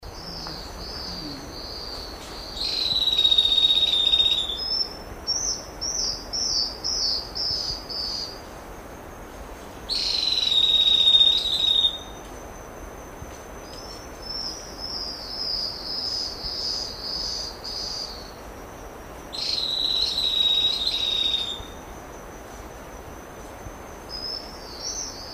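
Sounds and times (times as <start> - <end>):
rufous-breasted leaftosser song of sharp high whistled notes: 0.1 - 8.4, 9.9 - 12.3, 13.6 - 18.4, 19.3 - 21.8, 24.1 - 25.3.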